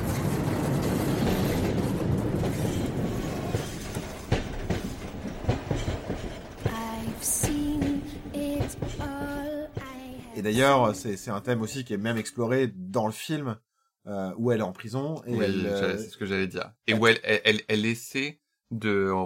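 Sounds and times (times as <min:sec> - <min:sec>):
train arriving on the rails, wheels clattering: 0:00.0 - 0:11.0
speech: 0:10.4 - 0:19.2.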